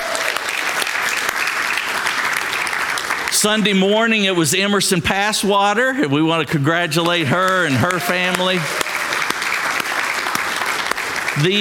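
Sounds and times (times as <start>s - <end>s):
church congregation clapping to celebrate a new convert: 0.0s - 4.6s, 7.0s - 11.6s
speech: 3.4s - 8.9s, 11.4s - 11.6s.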